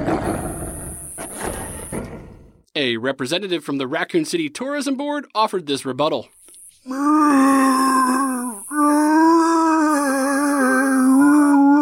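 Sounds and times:
speech: 2.8s - 7.6s
skinless monster dog growling: 6.9s - 11.8s.

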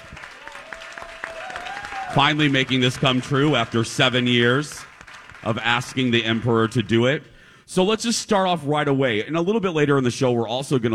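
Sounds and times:
audience applause: 0.0s - 7.0s
speech: 2.1s - 10.9s.

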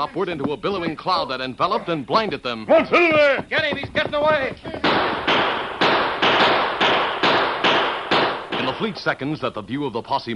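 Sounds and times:
speech: 0.0s - 5.2s, 8.8s - 10.3s
gunshots: 3.0s - 9.1s.

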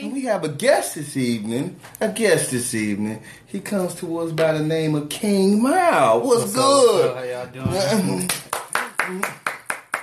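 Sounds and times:
speech: 0.3s - 8.4s, 9.1s - 9.4s
clapping sound effect: 8.3s - 10.0s.

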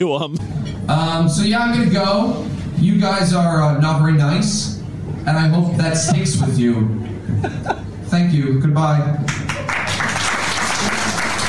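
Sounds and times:
speech: 0.0s - 9.4s
laughter: 5.9s - 8.1s
audience applause: 9.3s - 11.4s.

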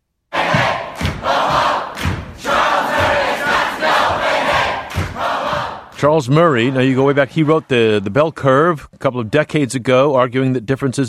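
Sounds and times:
protest crowd roaring and shouting: 0.3s - 7.5s
heavy thumps: 0.4s - 6.2s
speech: 6.0s - 11.0s.

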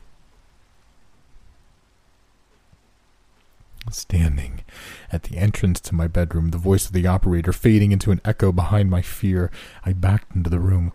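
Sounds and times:
steady rain: 0.0s - 5.1s
speech: 3.9s - 10.9s.

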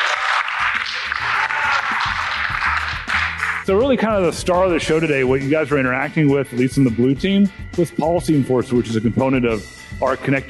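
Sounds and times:
audience screaming: 0.0s - 2.9s
audience clapping: 0.0s - 3.8s
speech: 3.7s - 10.4s.

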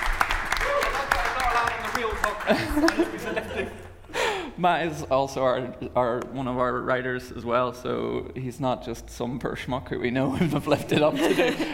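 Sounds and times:
audience applause: 0.0s - 3.5s
laughter: 0.6s - 4.2s, 10.3s - 11.7s
speech: 2.5s - 11.7s.

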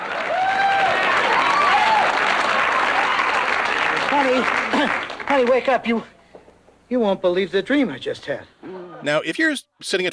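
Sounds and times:
studio audience applause: 0.0s - 5.7s
speech: 4.2s - 6.2s, 6.9s - 10.1s.

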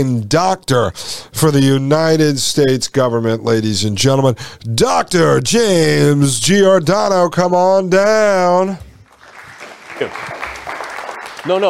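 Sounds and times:
speech: 0.0s - 8.9s, 10.0s - 10.4s, 11.4s - 11.6s
audience applause: 9.0s - 11.6s.

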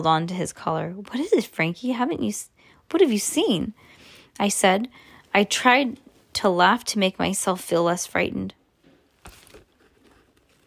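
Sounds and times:
speech: 0.0s - 8.6s
book page turning: 9.1s - 10.6s.

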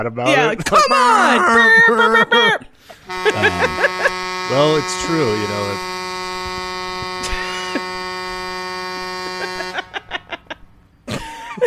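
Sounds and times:
speech: 0.0s - 5.9s
laughter: 0.3s - 5.8s, 7.0s - 8.0s, 9.2s - 11.6s
long continuous car horn honk: 3.0s - 10.5s.

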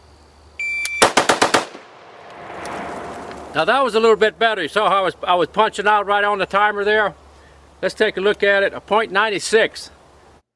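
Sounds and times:
rapid semi-automatic AR rifle gunfire: 1.0s - 1.9s
speech: 3.6s - 7.2s, 7.8s - 10.0s.

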